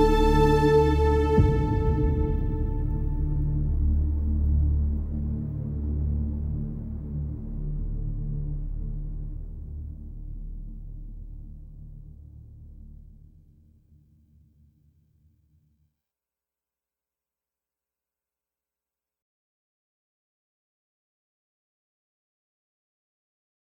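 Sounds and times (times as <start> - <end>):
original score from sad to triumphant: 0.0 - 8.4.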